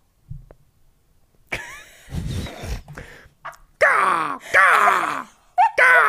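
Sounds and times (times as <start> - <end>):
person imitating crow caws: 3.5 - 6.0.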